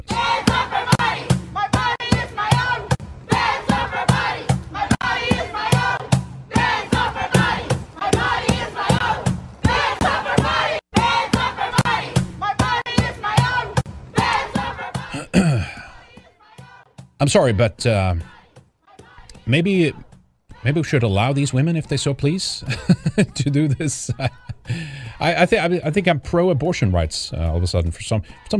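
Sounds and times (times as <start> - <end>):
crowd shouting and chanting: 0.0 - 21.9
speech: 17.2 - 18.4, 19.5 - 28.5
laughter: 22.5 - 25.0.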